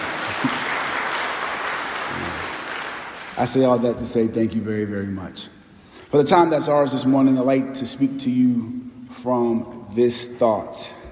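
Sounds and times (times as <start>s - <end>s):
applause: 0.0s - 3.8s
speech: 3.4s - 11.0s.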